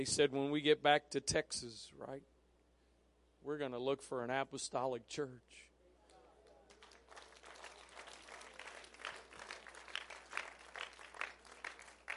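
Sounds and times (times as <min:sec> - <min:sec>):
speech: 0:00.0 - 0:02.3, 0:03.4 - 0:05.7
audience applause: 0:06.7 - 0:12.1.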